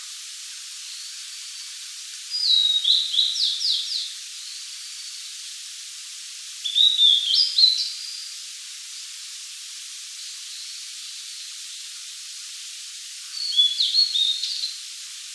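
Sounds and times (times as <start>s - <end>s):
blue-and-white flycatcher singing: 2.3s - 5.2s, 6.6s - 8.3s, 13.3s - 14.8s.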